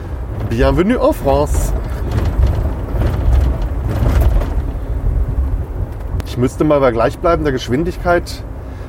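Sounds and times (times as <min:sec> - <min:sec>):
car thumping over bridge expansion joints: 0:00.0 - 0:06.2
speech: 0:00.5 - 0:01.9, 0:06.4 - 0:08.5.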